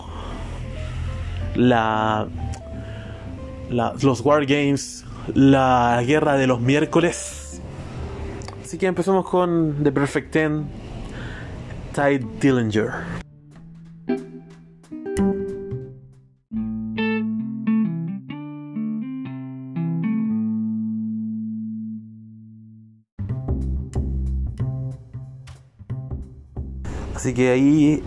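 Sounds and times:
speech: 1.6s - 2.6s, 3.7s - 7.6s, 8.7s - 10.8s, 12.0s - 13.2s, 27.3s - 28.0s
wrestler's old entrance theme, instrumental rock with distorted guitar and heavy drums: 13.2s - 22.4s, 23.2s - 26.8s.

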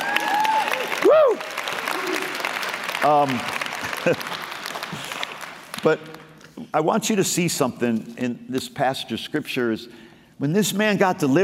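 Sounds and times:
people whooping and calling out: 0.0s - 2.5s
audience applause: 0.0s - 6.1s
speech: 3.0s - 5.1s, 5.8s - 11.4s.

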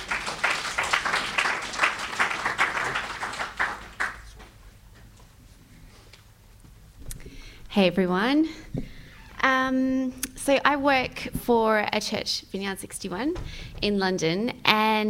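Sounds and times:
audience applause: 0.0s - 4.5s
speech: 7.8s - 8.8s, 9.6s - 15.0s.

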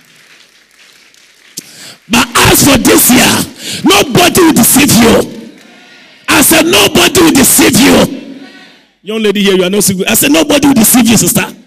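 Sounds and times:
audience clapping: 0.0s - 3.7s, 4.9s - 6.2s
speech: 2.1s - 5.4s, 6.6s - 8.2s, 9.0s - 11.6s.

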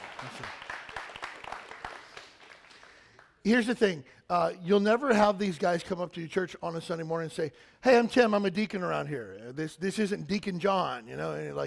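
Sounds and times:
audience clapping for the deacons: 0.0s - 3.5s
speech: 0.2s - 0.6s, 3.4s - 11.6s.

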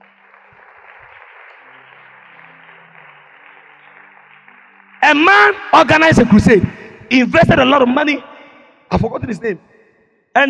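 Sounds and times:
audience clapping: 0.0s - 7.1s
speech: 5.1s - 8.3s, 8.9s - 9.7s.

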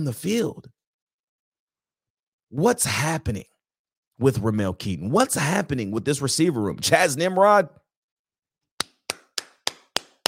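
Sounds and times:
speech: 0.0s - 0.7s, 2.5s - 3.5s, 4.2s - 7.8s
hand claps: 8.8s - 10.2s.

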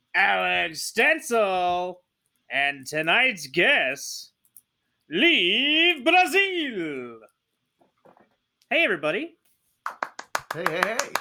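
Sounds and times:
speech: 0.2s - 4.3s, 5.1s - 7.3s, 8.7s - 11.1s
clapping: 9.9s - 11.1s.

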